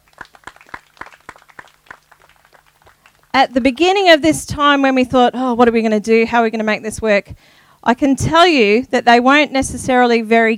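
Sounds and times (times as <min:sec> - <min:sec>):
small audience applause: 0:00.0 - 0:03.4
faint steady low hum: 0:00.0 - 0:10.5
speech: 0:03.4 - 0:10.5.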